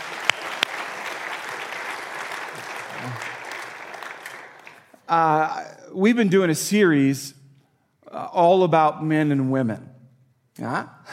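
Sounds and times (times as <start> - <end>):
audience applauding: 0.0 - 5.3
speech: 3.0 - 3.3, 5.1 - 7.4, 8.4 - 9.9, 10.6 - 11.0.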